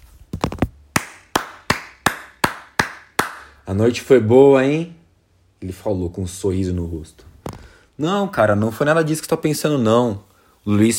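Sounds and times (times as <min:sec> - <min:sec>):
slow hand clapping: 0:00.9 - 0:03.6
speech: 0:03.7 - 0:05.0, 0:05.6 - 0:07.3, 0:08.0 - 0:10.9.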